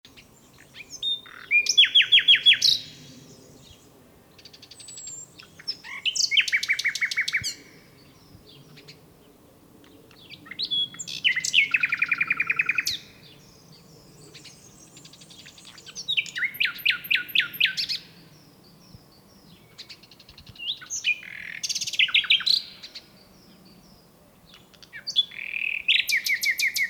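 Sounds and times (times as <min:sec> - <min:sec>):
common nightingale song: 0:00.0 - 0:09.0, 0:09.9 - 0:26.8
steady hiss: 0:00.1 - 0:26.8.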